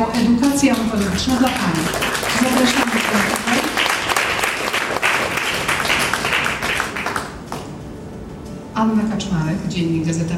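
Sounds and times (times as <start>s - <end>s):
audience applause: 0.2s - 7.7s
speech: 0.6s - 3.4s, 8.9s - 10.3s.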